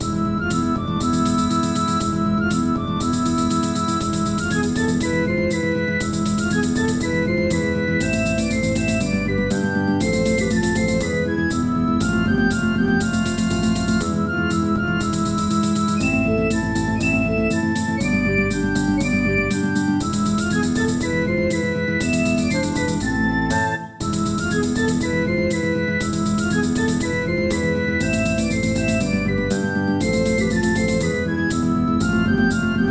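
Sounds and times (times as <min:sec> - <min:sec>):
Greek dance music: 0:00.0 - 0:32.8.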